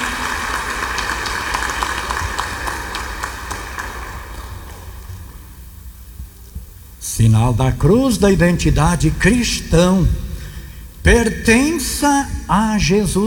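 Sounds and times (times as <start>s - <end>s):
applause: 0.0s - 5.6s
speech: 7.2s - 10.2s, 11.0s - 13.2s.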